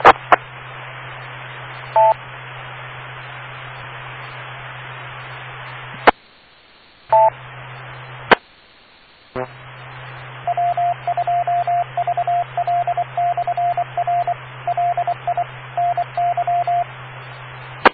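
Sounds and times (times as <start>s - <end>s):
steady hiss and low hum: 0.0s - 17.9s
touch-tone telephone dialing beeps: 10.5s - 16.8s.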